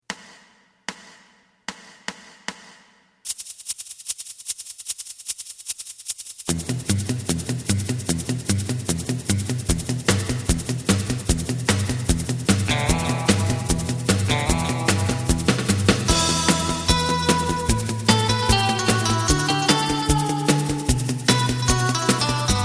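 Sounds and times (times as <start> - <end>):
bass: 6.5 - 22.6.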